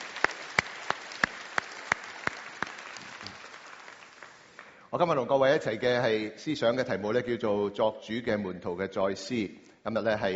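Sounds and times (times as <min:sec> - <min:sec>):
hand claps: 0:00.0 - 0:04.8
speech: 0:04.9 - 0:10.3.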